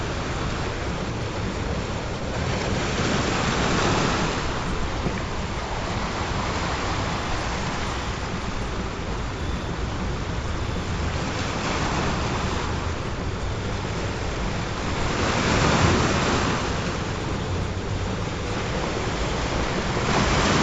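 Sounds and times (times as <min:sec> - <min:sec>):
ocean waves: 0:00.0 - 0:20.6.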